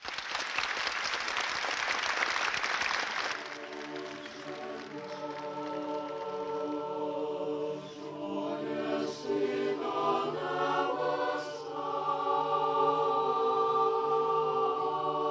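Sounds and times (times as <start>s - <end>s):
crowd clapping for Pope John Paul II in the Paul VI audience hall: 0.0s - 6.9s
crowd singing together: 3.4s - 15.2s.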